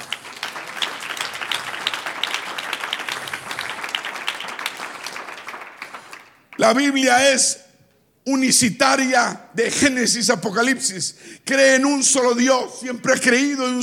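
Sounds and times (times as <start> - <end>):
audience applause: 0.0 - 6.6
speech: 6.6 - 7.6, 8.3 - 13.8.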